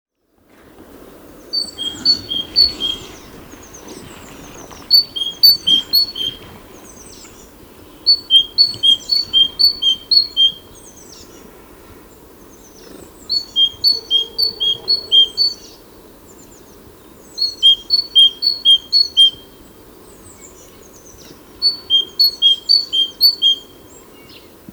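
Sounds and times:
faint hiss: 0:00.4 - 0:24.7
faint bird twitters: 0:01.4 - 0:11.5, 0:12.4 - 0:15.8, 0:20.6 - 0:24.5
great tit song: 0:01.4 - 0:24.6.

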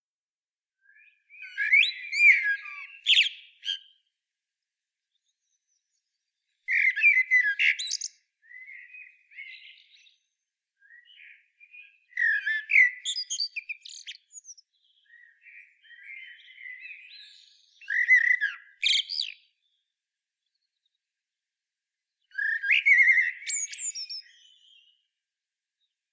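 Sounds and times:
common blackbird singing: 0:00.8 - 0:04.0, 0:05.1 - 0:19.8, 0:22.2 - 0:25.1.

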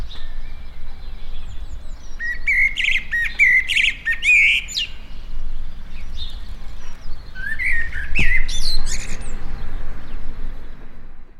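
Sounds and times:
common blackbird singing: 0:00.0 - 0:11.0.

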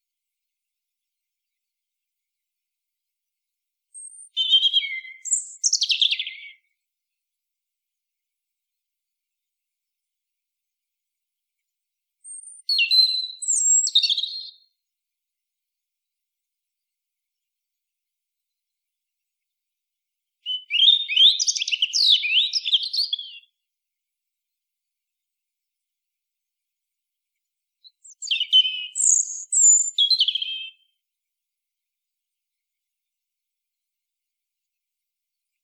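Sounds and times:
European robin singing: 0:03.9 - 0:06.7, 0:12.2 - 0:14.6, 0:20.4 - 0:23.5, 0:27.8 - 0:30.9.

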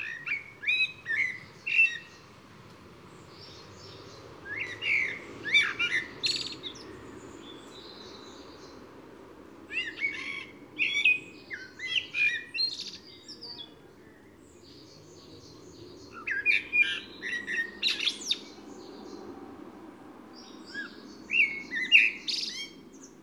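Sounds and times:
Eurasian blackbird singing: 0:00.0 - 0:02.2, 0:03.1 - 0:08.8, 0:09.7 - 0:19.2, 0:20.4 - 0:23.2.

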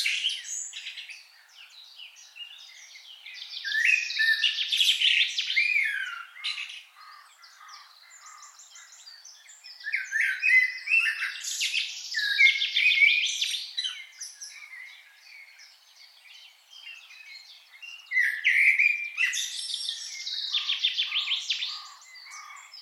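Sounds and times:
common blackbird Turdus merula calling: 0:02.7 - 0:15.0, 0:18.0 - 0:22.8.

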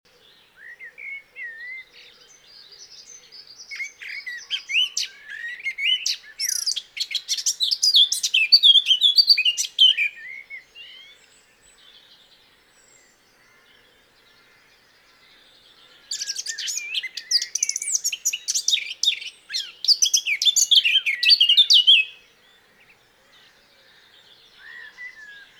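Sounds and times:
Eurasian blackcap warbling song: 0:03.6 - 0:11.0, 0:16.1 - 0:22.2.

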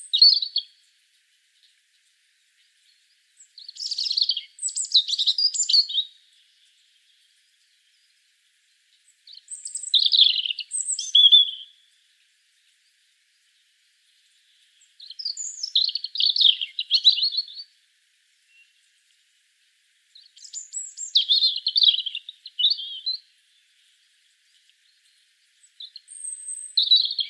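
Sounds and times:
European robin song: 0:00.0 - 0:00.9, 0:01.5 - 0:17.8, 0:20.1 - 0:27.2.

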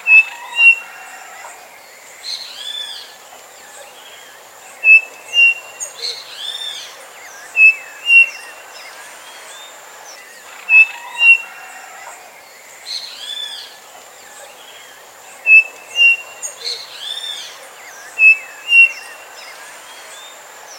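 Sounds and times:
bird warbling: 0:00.0 - 0:01.2, 0:04.8 - 0:06.2, 0:07.5 - 0:08.5, 0:10.5 - 0:12.2, 0:15.5 - 0:16.9, 0:18.2 - 0:19.1
bird calls: 0:00.0 - 0:08.9, 0:10.2 - 0:20.7
background hiss: 0:00.0 - 0:20.7.

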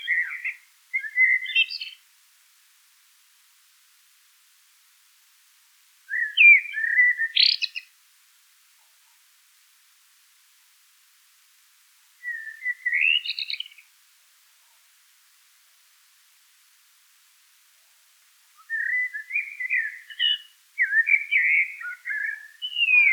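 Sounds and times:
common blackbird song: 0:00.0 - 0:02.1, 0:06.1 - 0:07.9, 0:12.2 - 0:13.9, 0:18.6 - 0:23.1.

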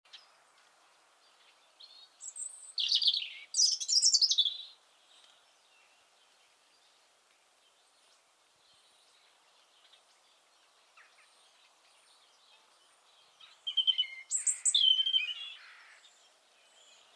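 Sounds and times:
European robin singing: 0:00.1 - 0:17.1.

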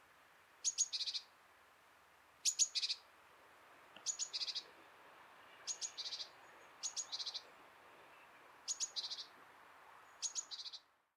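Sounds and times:
background hiss: 0:00.0 - 0:11.1
great tit calling: 0:00.6 - 0:01.3, 0:02.4 - 0:03.0, 0:04.0 - 0:04.6, 0:05.7 - 0:07.5, 0:08.7 - 0:09.3, 0:10.1 - 0:10.9.

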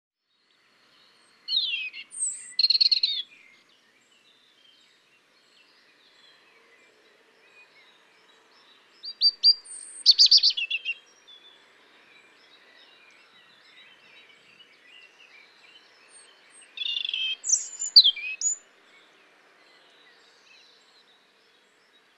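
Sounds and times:
European robin song: 0:00.3 - 0:22.1.

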